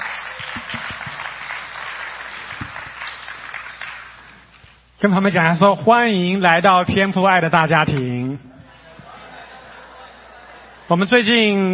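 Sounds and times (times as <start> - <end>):
audience applause: 0.0 - 4.6
speech: 5.0 - 8.5, 10.9 - 11.7
laughter: 8.4 - 11.1.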